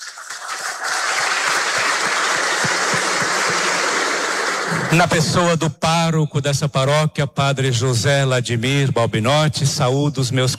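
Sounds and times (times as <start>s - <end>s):
audience applause: 0.0s - 5.2s
speech: 4.9s - 10.5s.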